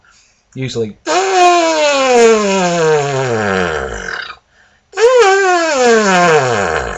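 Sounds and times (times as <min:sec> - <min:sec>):
speech: 0:00.5 - 0:03.5
brass mouthpiece buzzing from low to high: 0:01.1 - 0:04.2, 0:05.0 - 0:06.9.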